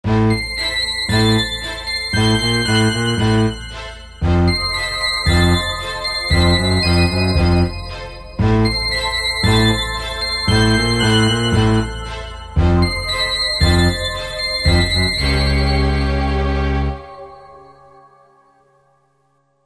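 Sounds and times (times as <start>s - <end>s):
suspense music: 0.0s - 18.1s.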